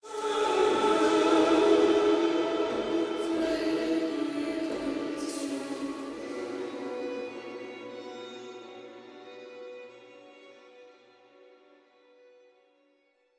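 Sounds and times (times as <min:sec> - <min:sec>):
ambient water music: 0:00.0 - 0:08.1.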